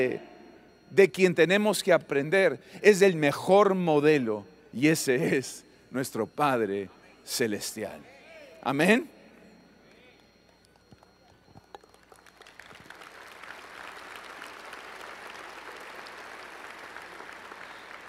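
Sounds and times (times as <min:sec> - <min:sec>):
speech: 0:00.0 - 0:00.3, 0:00.9 - 0:09.2
audience applause: 0:11.8 - 0:18.0.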